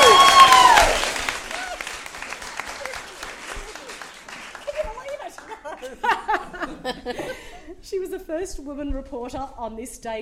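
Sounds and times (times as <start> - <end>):
high sliding cheer: 0.0 - 5.6
audience applause: 0.0 - 6.5
laughter: 1.5 - 7.8
speech: 7.9 - 10.2.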